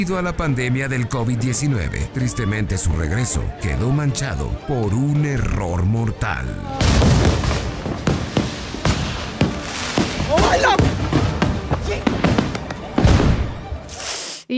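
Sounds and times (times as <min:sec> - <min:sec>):
speech: 0:00.0 - 0:07.6
fireworks rockets exploding: 0:06.8 - 0:14.3.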